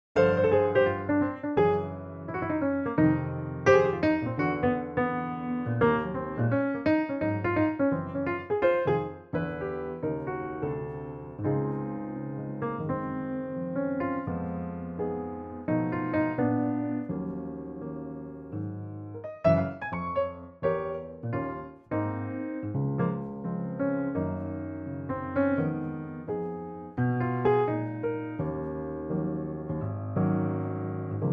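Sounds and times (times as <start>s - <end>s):
piano in D-flat: 0.0s - 31.3s.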